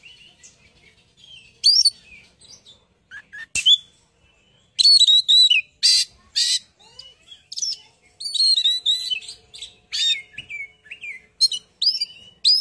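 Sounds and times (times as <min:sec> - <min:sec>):
bird chirping and twittering: 0:00.0 - 0:12.6.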